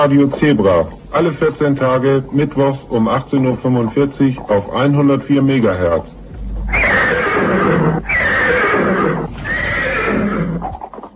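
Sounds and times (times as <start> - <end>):
speech: 0.0 - 6.2
horse neighing, cheerful whinny: 6.4 - 11.0.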